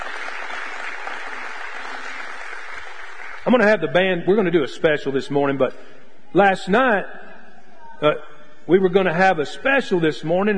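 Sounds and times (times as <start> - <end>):
audience applause: 0.0 - 3.4
speech: 3.4 - 7.2, 8.0 - 10.5.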